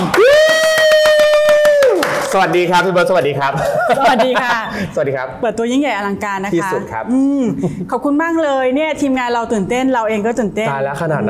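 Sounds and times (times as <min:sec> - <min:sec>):
audience rhythmic clapping: 0:00.0 - 0:03.0
speech: 0:02.3 - 0:11.2.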